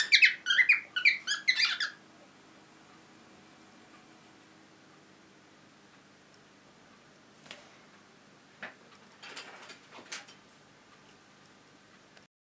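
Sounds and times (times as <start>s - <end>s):
cockatiel parrot calling: 0.0s - 2.0s.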